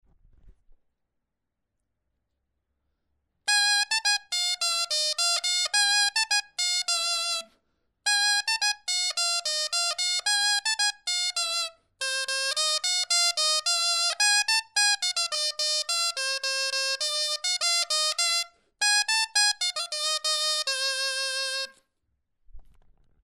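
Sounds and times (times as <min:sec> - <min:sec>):
clarinet bourree: 0:03.5 - 0:07.5, 0:08.1 - 0:21.8.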